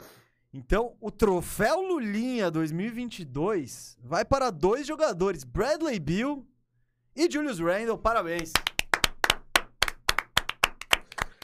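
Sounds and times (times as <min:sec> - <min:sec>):
speech: 0:00.5 - 0:06.5, 0:07.2 - 0:08.7
hands clapping: 0:08.3 - 0:11.4.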